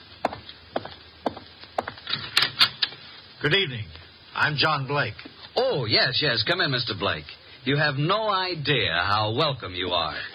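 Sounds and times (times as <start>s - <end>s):
footsteps on floor: 0.2s - 2.1s
speech: 3.4s - 10.3s.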